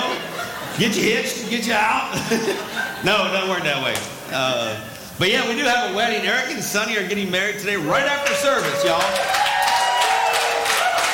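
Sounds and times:
laughter: 0.0s - 3.6s
speech: 0.8s - 9.4s
audience clapping: 8.0s - 11.1s.

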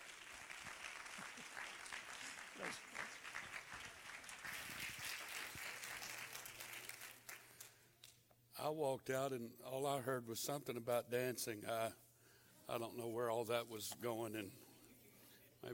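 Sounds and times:
audience clapping hands: 0.0s - 8.2s
speech: 2.6s - 3.0s, 8.6s - 12.0s, 12.7s - 14.7s.

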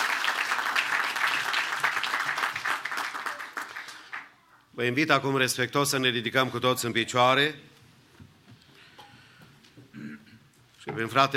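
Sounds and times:
church congregation applauding: 0.0s - 4.5s
speech: 4.8s - 7.7s, 11.0s - 11.3s.

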